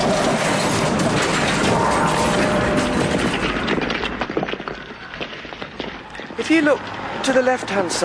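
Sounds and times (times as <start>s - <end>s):
double-decker bus crashing into low bridge: 0.0s - 6.4s
speech: 6.5s - 8.0s.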